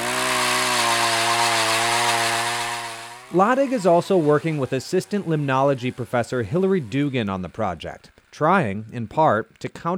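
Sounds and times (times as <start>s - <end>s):
power auger drilling through lake ice: 0.0s - 7.2s
speech: 3.3s - 9.9s.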